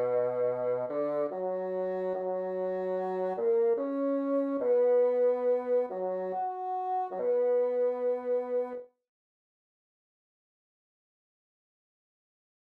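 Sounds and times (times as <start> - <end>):
bassoon: 0.0 - 8.9.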